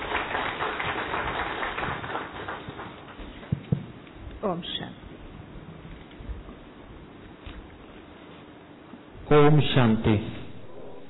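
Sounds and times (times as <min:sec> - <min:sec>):
audience applauding to welcome a speaker at a course session: 0:00.0 - 0:03.4
speech: 0:04.4 - 0:05.0, 0:09.3 - 0:10.3.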